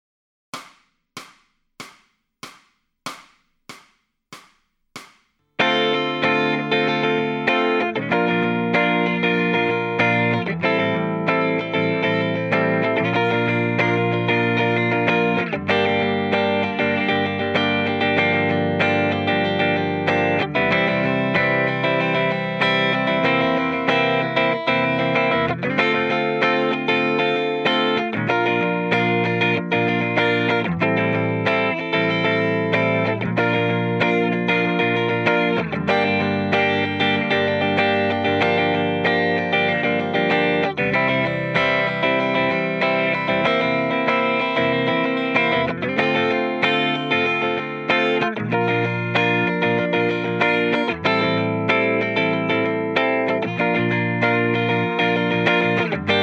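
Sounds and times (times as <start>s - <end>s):
electric guitar lead backing track: 5.6s - 56.2s.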